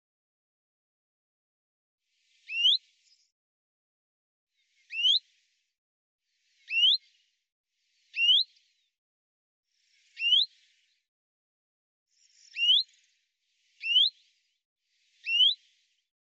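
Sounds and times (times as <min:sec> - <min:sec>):
Common chaffinch calls: 0:02.5 - 0:02.8, 0:04.9 - 0:05.2, 0:06.7 - 0:07.0, 0:08.2 - 0:08.4, 0:10.2 - 0:10.5, 0:12.5 - 0:12.8, 0:13.8 - 0:14.1, 0:15.2 - 0:15.6.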